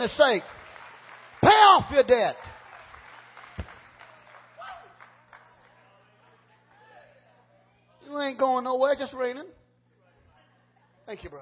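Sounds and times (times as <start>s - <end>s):
speech: 0.0s - 0.6s, 1.8s - 2.5s, 8.1s - 9.6s, 11.1s - 11.4s
audience clapping: 0.0s - 7.0s.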